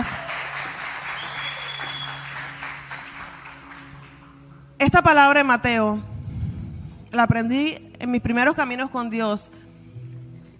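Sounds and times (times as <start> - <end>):
audience applause: 0.0 - 4.3
speech: 4.8 - 6.1, 7.1 - 9.6.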